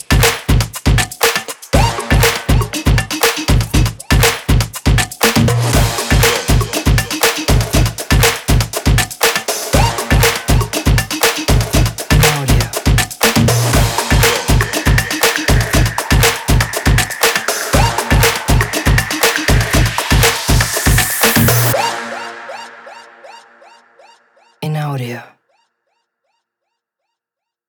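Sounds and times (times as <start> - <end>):
percussion drums: 0.0 - 22.0.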